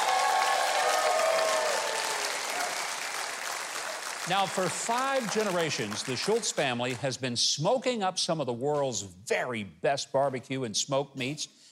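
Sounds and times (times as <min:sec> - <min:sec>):
faint whistles and cheers: 0:00.0 - 0:04.0
audience applause: 0:00.0 - 0:07.1
speech: 0:04.3 - 0:11.7.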